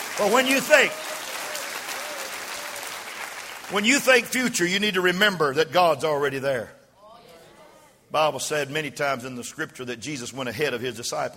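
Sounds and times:
audience clapping hands: 0:00.0 - 0:04.6
speech: 0:00.2 - 0:01.2, 0:03.7 - 0:06.8, 0:08.1 - 0:11.3.

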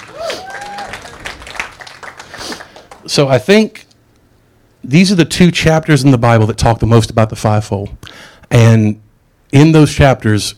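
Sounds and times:
audience round of applause: 0:00.0 - 0:03.3
speech: 0:03.0 - 0:03.8, 0:04.8 - 0:10.5.

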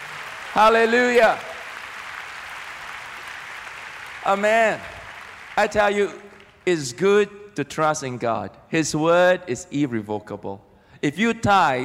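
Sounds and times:
audience clapping: 0:00.0 - 0:06.9
speech: 0:00.6 - 0:01.5, 0:04.2 - 0:04.9, 0:05.6 - 0:11.8.

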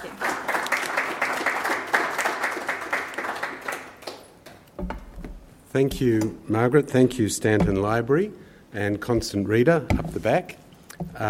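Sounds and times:
audience applauding a speaker at a library event: 0:00.0 - 0:04.6
speech: 0:05.8 - 0:11.2.

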